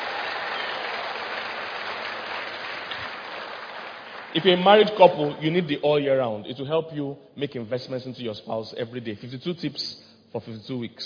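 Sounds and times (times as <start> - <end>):
audience clapping: 0.0 - 5.6
speech: 4.3 - 11.0.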